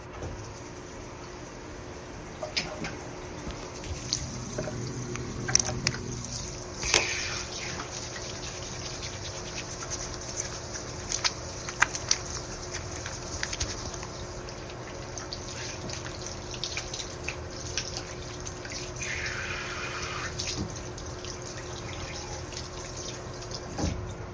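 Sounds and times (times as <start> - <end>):
washing dishes at home in the evening: 0.2 - 24.2.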